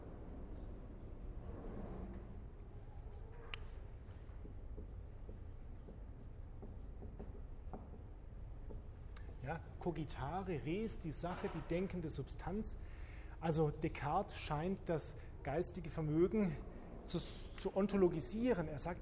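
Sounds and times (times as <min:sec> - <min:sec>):
constant noise: 0:00.0 - 0:19.0
lecturer handwriting a philosophical term with pen or chalk: 0:04.0 - 0:09.1
speech: 0:09.5 - 0:19.0.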